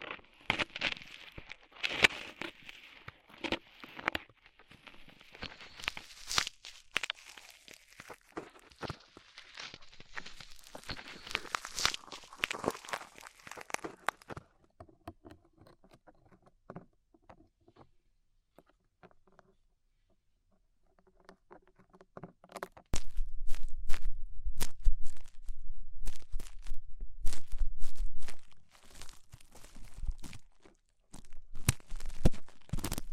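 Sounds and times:
ear cleaning crinkly scratching and tapping: 0.0 - 33.1
busy sharp crackles: 0.3 - 14.4, 22.9 - 33.1
low rumble: 23.0 - 28.5.

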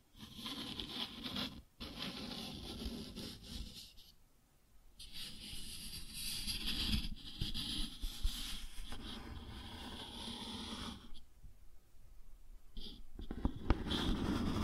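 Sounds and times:
cardboard scratched and rubbed: 0.2 - 4.0, 5.0 - 11.2, 13.2 - 14.6.

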